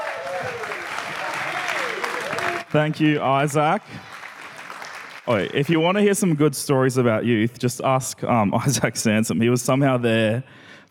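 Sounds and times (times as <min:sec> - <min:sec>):
audience applause welcoming a speaker at an event: 0:00.0 - 0:06.4
speech: 0:02.7 - 0:04.1, 0:05.3 - 0:10.8.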